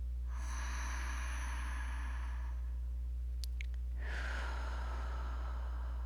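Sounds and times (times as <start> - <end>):
steady low hum: 0.0 - 6.0
deep breath drawn into the belly during a guided breathing exercise: 0.3 - 2.9, 4.0 - 6.0.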